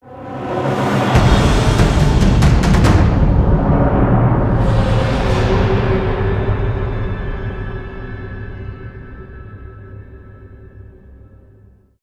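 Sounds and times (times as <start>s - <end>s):
combat intro music: 0.0s - 9.6s.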